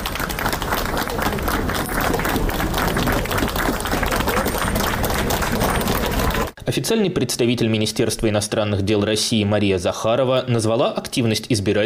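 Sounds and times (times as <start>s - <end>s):
applause greeting arrival at embassy: 0.0s - 6.6s
speech: 6.8s - 11.8s.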